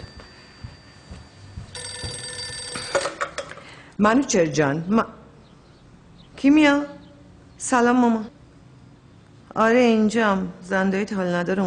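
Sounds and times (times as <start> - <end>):
telephone ringing: 0.0 - 3.5
speech: 4.0 - 5.2, 6.4 - 7.0, 7.6 - 8.4, 9.6 - 11.6.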